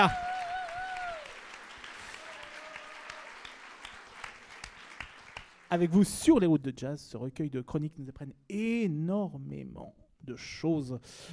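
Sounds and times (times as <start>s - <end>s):
speech: 0.0s - 0.2s, 5.7s - 11.3s
audience applause: 0.0s - 5.9s.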